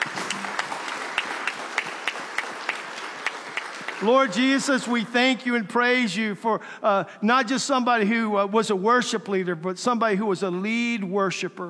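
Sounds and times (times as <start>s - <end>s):
church congregation applause: 0.0s - 4.5s
speech: 4.0s - 11.6s.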